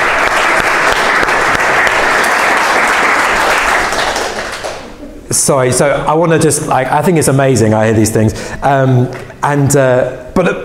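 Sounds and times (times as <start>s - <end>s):
audience applause: 0.0s - 5.0s
speech: 5.3s - 10.6s.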